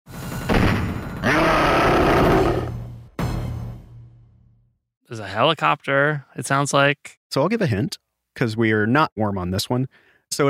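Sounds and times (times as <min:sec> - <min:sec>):
sharp heavy hit: 0:00.3 - 0:04.1
video game monster roar: 0:01.2 - 0:02.8
speech: 0:05.1 - 0:10.4.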